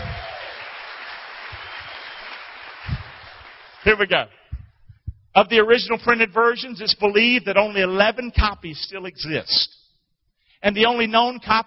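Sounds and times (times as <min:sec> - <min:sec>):
audience cheering and applause: 0:00.0 - 0:04.1
speech: 0:03.9 - 0:04.4, 0:05.4 - 0:09.8, 0:10.6 - 0:11.6
low thumps: 0:04.5 - 0:05.4.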